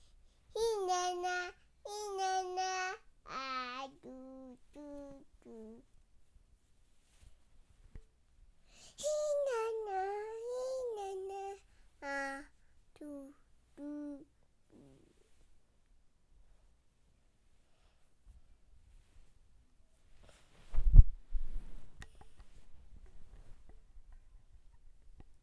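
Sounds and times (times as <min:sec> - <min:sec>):
baby singing: 0:00.5 - 0:05.8, 0:09.0 - 0:14.9.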